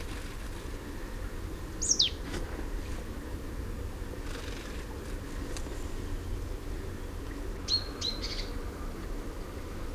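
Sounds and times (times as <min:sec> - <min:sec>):
steady low rumble: 0:00.0 - 0:09.9
great tit winter calls: 0:01.8 - 0:02.2, 0:07.7 - 0:08.6.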